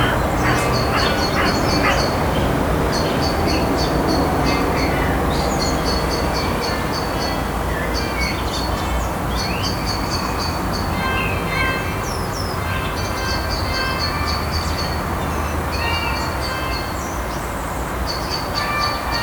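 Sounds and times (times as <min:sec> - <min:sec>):
distant saxophone: 0:00.0 - 0:03.2
blackbird in the evening: 0:00.0 - 0:03.8
cars in the evening: 0:00.0 - 0:19.2.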